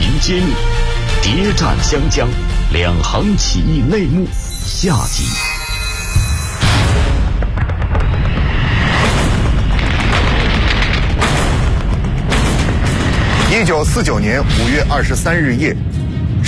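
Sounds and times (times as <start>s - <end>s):
speech: 0.3s - 5.5s, 13.5s - 16.4s
distant rumbling artillery fire: 6.7s - 13.5s.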